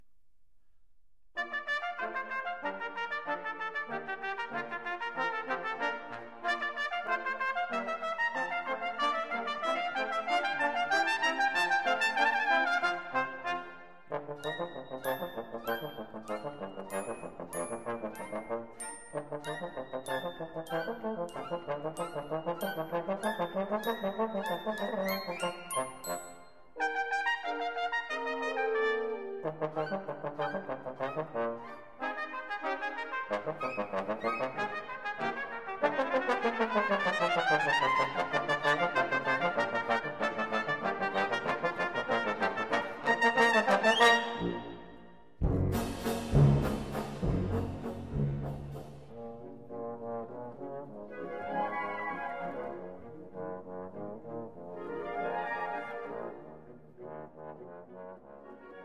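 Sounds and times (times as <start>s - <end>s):
bass trombone in a double concerto: 1.4s - 26.2s, 26.8s - 51.8s
trumpet in a double concerto: 1.4s - 58.8s
band playing a double concerto: 45.4s - 49.8s.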